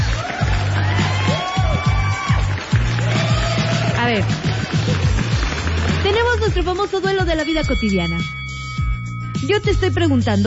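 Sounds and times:
applause sound effect: 0:00.0 - 0:07.4
speech: 0:04.1 - 0:04.4, 0:06.6 - 0:08.4, 0:09.4 - 0:10.4.

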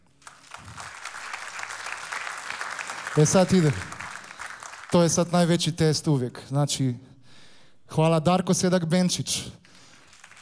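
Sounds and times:
audience applause after thanks to the musicians: 0:00.2 - 0:05.6, 0:10.0 - 0:10.4
speech: 0:03.2 - 0:03.9, 0:04.9 - 0:07.1, 0:07.9 - 0:09.6.

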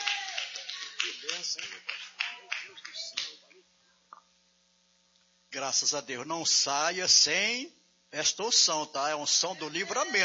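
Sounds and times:
audience applauding: 0:00.0 - 0:03.4
speech: 0:01.0 - 0:04.4, 0:05.5 - 0:10.2.

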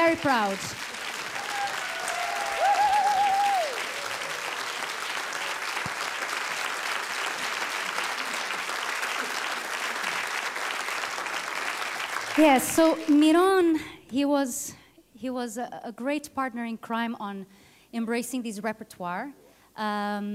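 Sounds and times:
concert audience applauding: 0:00.0 - 0:13.2
speech: 0:00.1 - 0:01.0, 0:12.4 - 0:20.3.

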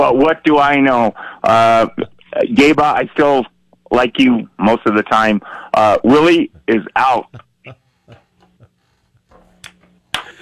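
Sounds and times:
speech: 0:00.0 - 0:08.2
low hum: 0:00.0 - 0:10.3
hand claps: 0:09.6 - 0:10.3.

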